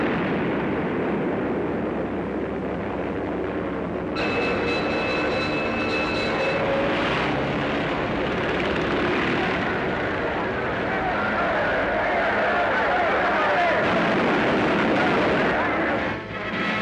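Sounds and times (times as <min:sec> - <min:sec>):
aircraft engine roar: 0:00.0 - 0:16.8
sharp high whining tone: 0:04.2 - 0:07.6.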